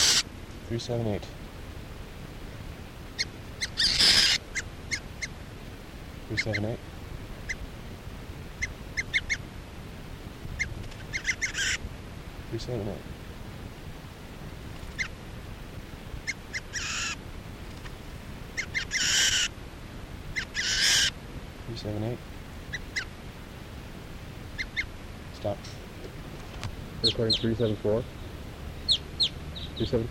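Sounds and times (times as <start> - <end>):
bird squawking while being handled: 0.0 - 0.3, 3.2 - 5.4, 6.3 - 6.8, 7.4 - 7.6, 8.6 - 9.4, 10.6 - 11.8, 14.9 - 15.2, 16.2 - 17.2, 18.6 - 19.6, 20.3 - 21.2, 22.7 - 23.2, 24.5 - 24.9, 28.8 - 29.8
steady hiss: 0.0 - 30.1
speech: 0.7 - 1.4, 6.3 - 7.0, 12.5 - 13.1, 21.8 - 22.3, 27.1 - 28.2, 29.8 - 30.1.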